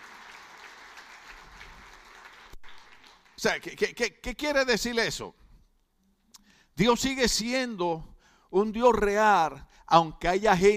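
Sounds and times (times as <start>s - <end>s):
audience applause: 0.0s - 3.6s
speech: 3.4s - 5.4s, 6.8s - 10.7s.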